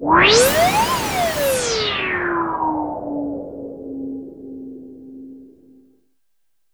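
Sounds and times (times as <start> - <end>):
synth effects: 0.0 - 2.8.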